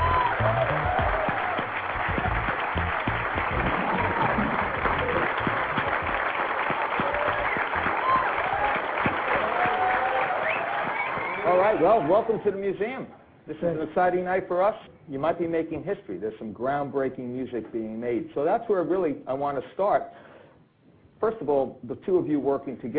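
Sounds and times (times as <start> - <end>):
audience applause welcoming two music artists onstage at a museum event: 0.0 - 12.4
speech: 11.8 - 20.3, 21.2 - 22.9.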